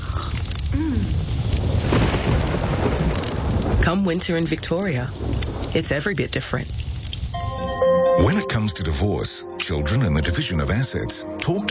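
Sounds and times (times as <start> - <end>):
heavy rain pouring: 0.0 - 11.6
deep thunder rumbling: 0.7 - 6.7
speech: 3.9 - 6.9, 8.2 - 11.6.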